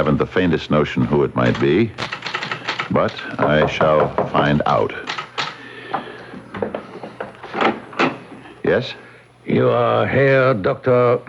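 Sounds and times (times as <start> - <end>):
speech: 0.0 - 2.2, 2.9 - 5.1, 8.7 - 11.2
knocking on a door: 3.4 - 4.6.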